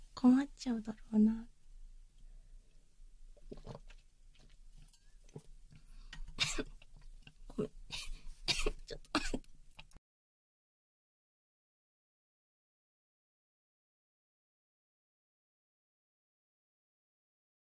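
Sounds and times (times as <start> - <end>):
speech: 0.2 - 1.5
person coughing after water went down the windpipe: 6.4 - 6.8, 7.9 - 9.5.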